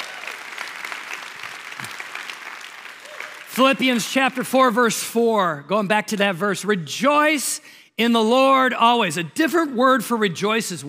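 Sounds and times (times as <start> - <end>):
audience applause: 0.0 - 3.8
speech: 3.6 - 10.8.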